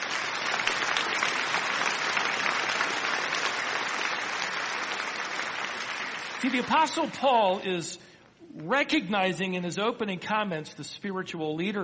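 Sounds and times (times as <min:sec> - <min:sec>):
audience applause: 0:00.0 - 0:07.1
speech: 0:06.4 - 0:11.8.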